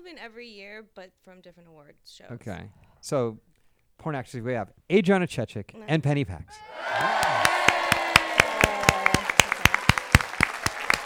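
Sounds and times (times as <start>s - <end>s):
speech: 0.1s - 7.6s
person whooping: 6.6s - 10.0s
small crowd applauding: 6.6s - 11.0s.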